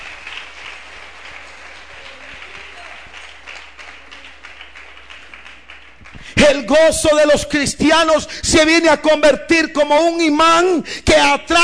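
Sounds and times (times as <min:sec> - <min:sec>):
audience applause: 0:00.0 - 0:06.4
speech: 0:06.4 - 0:11.6.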